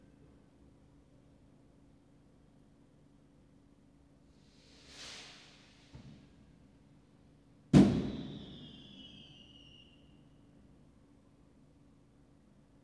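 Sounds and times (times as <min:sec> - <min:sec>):
fireworks: 0:07.8 - 0:09.8.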